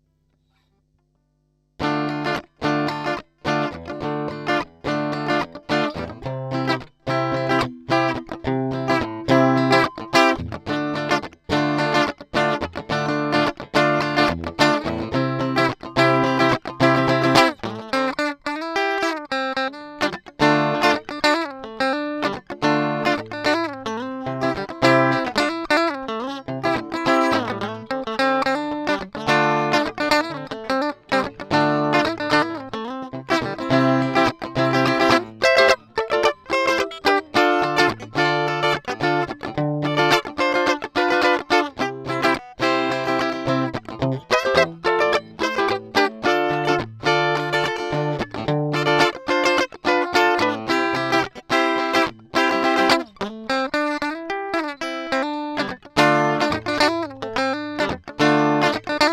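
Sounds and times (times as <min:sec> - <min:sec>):
amplifier: 0:01.8 - 0:59.1.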